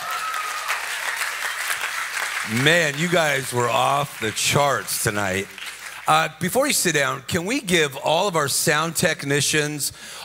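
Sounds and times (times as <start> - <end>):
crowd clapping: 0.0 - 7.0
speech: 2.4 - 10.2.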